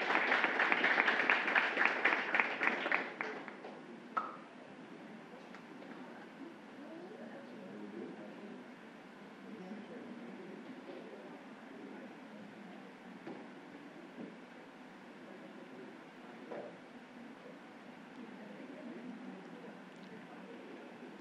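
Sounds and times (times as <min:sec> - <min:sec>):
round of applause: 0:00.0 - 0:03.8.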